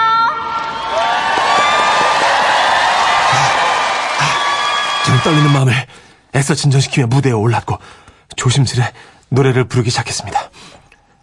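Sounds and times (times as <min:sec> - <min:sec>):
audience applause: 0:00.5 - 0:05.7
speech: 0:05.2 - 0:10.8.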